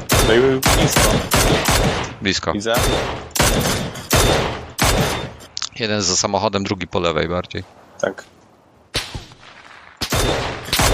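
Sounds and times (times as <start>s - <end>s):
video game gunfire: 0.0s - 5.5s, 8.9s - 10.9s
speech: 0.3s - 4.5s, 5.8s - 8.3s.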